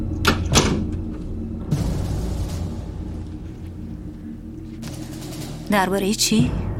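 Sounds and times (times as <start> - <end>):
door being shut: 0.2 - 2.6
speech: 5.7 - 6.6.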